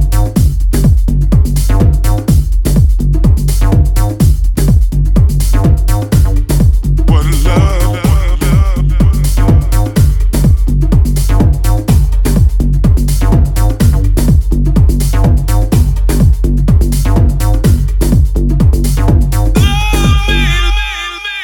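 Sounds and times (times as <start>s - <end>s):
bongos: 0.0s - 21.3s
congas: 0.1s - 21.0s
tabla: 19.6s - 21.2s.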